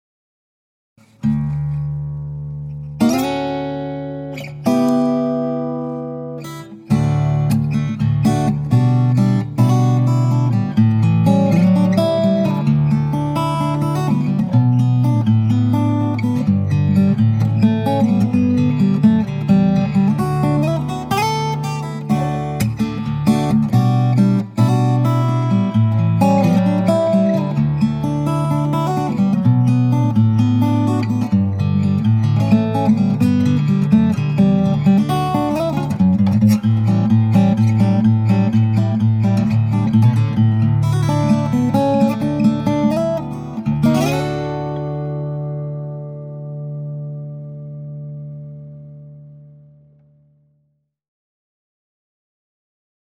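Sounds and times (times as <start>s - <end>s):
guitar: 1.0s - 50.8s.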